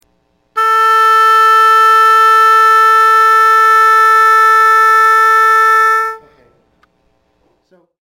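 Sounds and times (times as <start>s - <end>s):
oboe: 0.6s - 6.5s.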